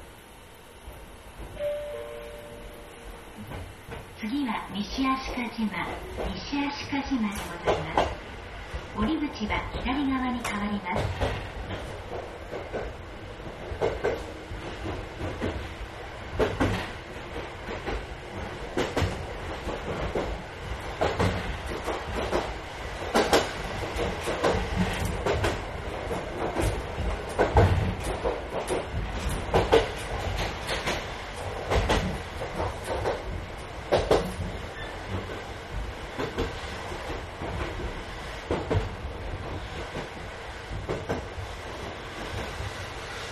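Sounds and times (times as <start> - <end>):
train running on rails: 0.0 - 43.2
speech: 4.3 - 8.1, 8.9 - 13.0.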